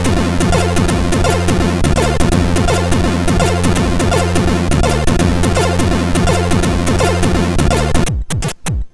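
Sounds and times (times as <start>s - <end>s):
SID chip MOS6581R3 chiptune jig: 0.0s - 8.6s.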